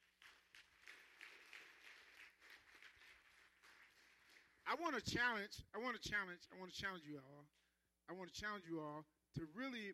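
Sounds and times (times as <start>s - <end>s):
group of people clapping: 0.0s - 5.0s
speech: 4.7s - 9.9s.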